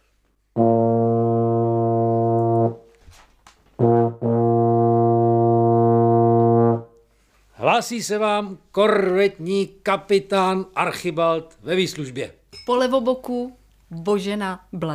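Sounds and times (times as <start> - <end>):
ship's horn blasts: 0.6 - 3.0, 3.8 - 7.0
speech: 7.8 - 14.9.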